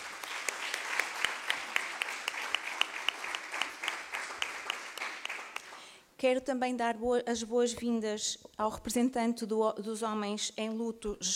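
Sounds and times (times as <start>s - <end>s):
audience applause: 0.0s - 6.0s
speech: 6.2s - 11.3s.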